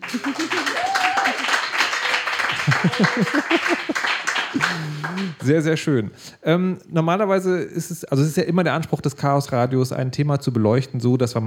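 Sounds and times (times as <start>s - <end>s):
laughter: 0.0s - 5.4s
crowd clapping: 0.0s - 5.5s
speech: 0.1s - 0.8s, 2.8s - 11.4s
whoops and shouted voices: 0.1s - 1.7s.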